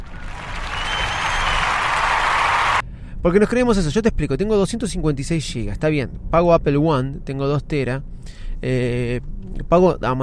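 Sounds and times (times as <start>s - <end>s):
crowd applause: 0.0s - 2.8s
speech: 3.2s - 10.2s.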